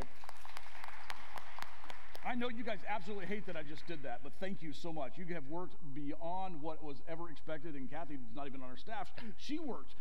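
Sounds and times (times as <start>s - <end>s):
applause: 0.0s - 4.2s
speech: 2.3s - 9.9s.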